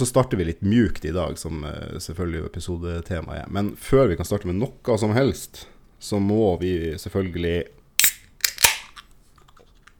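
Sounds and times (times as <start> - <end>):
speech: 0.0 - 7.8
can of beer opening: 8.0 - 9.1.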